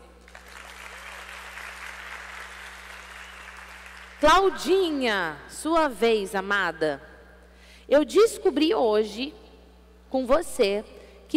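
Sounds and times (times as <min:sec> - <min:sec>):
applause: 0:00.2 - 0:04.2
speech: 0:04.2 - 0:07.1, 0:07.9 - 0:09.4, 0:10.1 - 0:11.3.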